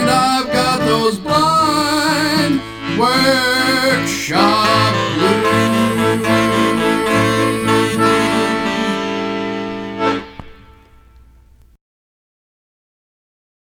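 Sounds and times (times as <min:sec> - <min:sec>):
workshop blues music: 0:00.1 - 0:11.0.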